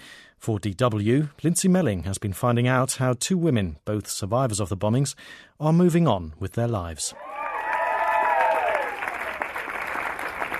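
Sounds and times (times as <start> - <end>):
speech: 0.4 - 7.4
crowd cheering at a wedding ceremony: 7.1 - 10.5.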